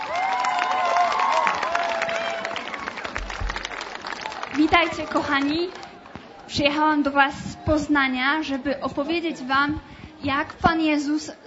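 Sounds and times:
cheers and whoops: 0.0 - 3.2
audience clapping: 0.0 - 6.2
speech: 4.7 - 5.8, 6.5 - 11.4.

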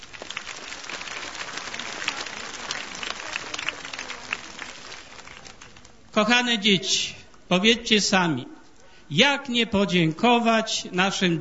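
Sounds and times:
small round of applause: 0.0 - 6.1
speech: 6.2 - 8.5, 9.1 - 11.3.

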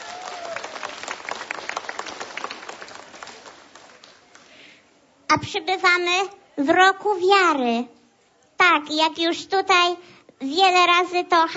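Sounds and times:
warm applause from pilgrims: 0.0 - 4.8
speech: 5.3 - 8.0, 8.6 - 11.5.

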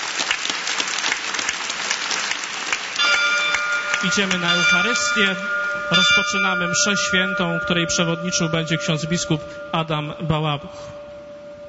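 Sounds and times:
applause: 0.0 - 5.2
speech: 4.0 - 11.0.

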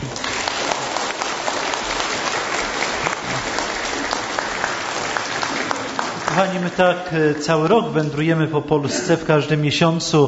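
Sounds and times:
audience applause: 0.0 - 7.5
speech: 6.4 - 10.2.

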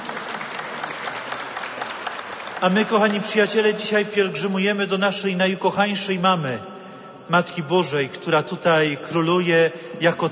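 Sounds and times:
crowd applause for a band at a pilgrimage gathering: 0.0 - 3.6
speech: 2.6 - 6.7, 7.3 - 10.3.

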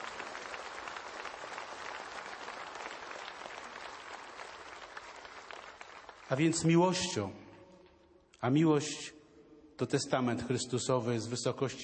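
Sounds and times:
audience applause: 0.0 - 6.7
speech: 6.3 - 7.4, 8.4 - 9.2, 9.8 - 11.8.

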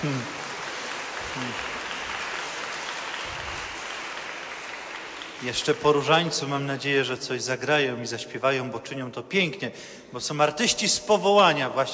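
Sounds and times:
speech: 0.0 - 0.4, 1.4 - 1.8, 5.4 - 11.9
audience applause: 0.0 - 6.7.

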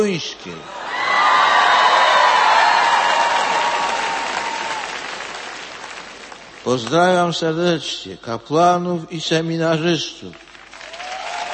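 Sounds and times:
speech: 0.0 - 0.8, 6.6 - 10.5
crowd applauding: 0.7 - 7.0, 10.3 - 11.5.

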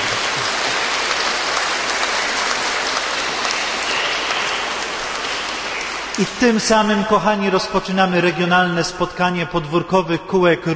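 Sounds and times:
large crowd applauding: 0.0 - 6.4
speech: 6.2 - 10.7.

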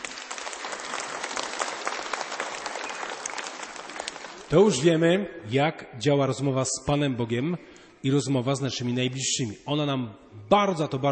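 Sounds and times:
audience applause: 0.0 - 4.8
speech: 4.5 - 11.1.

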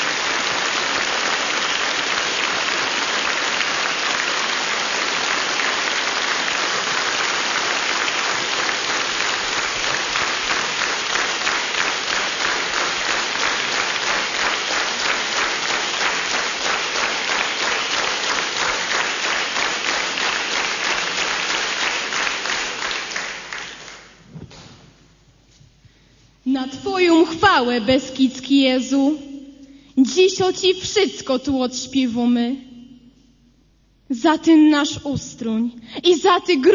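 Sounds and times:
audience applause: 0.0 - 24.2
speech: 27.6 - 29.2, 30.0 - 32.6, 34.1 - 36.7.

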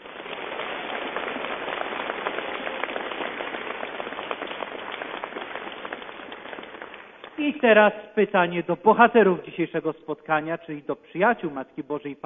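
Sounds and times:
warm applause from an audience: 0.0 - 7.4
speech: 7.4 - 12.2.

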